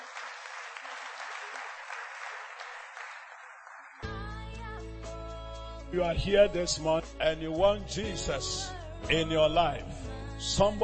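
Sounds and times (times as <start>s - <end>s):
audience clapping hands: 0.0s - 4.2s
loud music with organ-like tones: 4.0s - 10.8s
speech: 5.9s - 10.8s.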